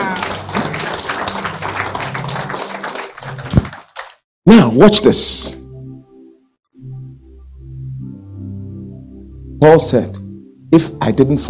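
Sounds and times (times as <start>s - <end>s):
audience clapping: 0.0s - 4.2s
speech: 4.5s - 5.6s, 9.6s - 11.4s.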